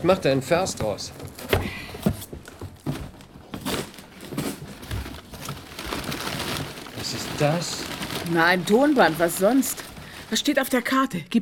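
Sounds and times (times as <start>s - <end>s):
speech: 0.0s - 1.8s, 7.4s - 11.4s
package being unwrapped: 3.2s - 10.8s.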